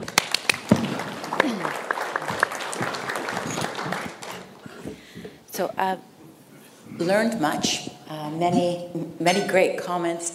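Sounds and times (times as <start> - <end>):
audience round of applause: 0.0 - 5.0
speech: 5.6 - 6.1, 7.0 - 10.3.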